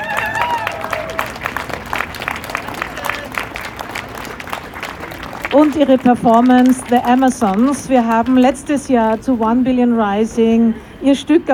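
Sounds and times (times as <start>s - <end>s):
audience applause: 0.0s - 9.2s
brief voices or cheers: 0.0s - 10.5s
speech: 5.5s - 11.5s.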